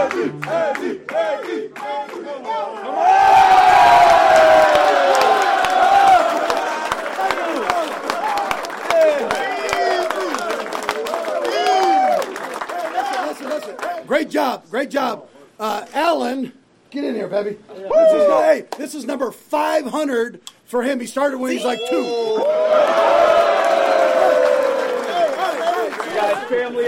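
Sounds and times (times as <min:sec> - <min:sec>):
National Football League stadium crowd cheering: 0:00.0 - 0:14.1, 0:21.5 - 0:26.8
speech: 0:14.4 - 0:23.3.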